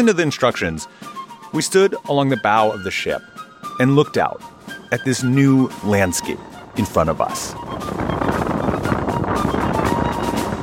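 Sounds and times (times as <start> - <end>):
speech: 0.0 - 9.0
strong Arctic wind on a ship's deck: 5.6 - 10.6.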